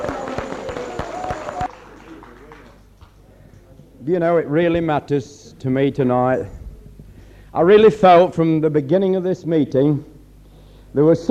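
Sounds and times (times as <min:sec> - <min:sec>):
audience clapping hands: 0:00.0 - 0:03.7
speech: 0:04.0 - 0:06.6, 0:07.6 - 0:10.1, 0:10.9 - 0:11.2.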